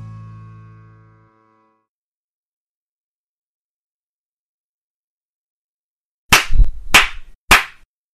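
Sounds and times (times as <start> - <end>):
hand claps: 6.3 - 7.9.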